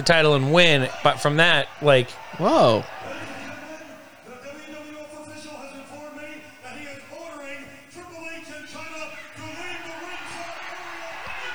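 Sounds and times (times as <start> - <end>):
speech: 0.0 - 3.0
laughter: 0.0 - 11.5
wrestling arena crowd cheering at WrestleMania 14: 0.0 - 11.5.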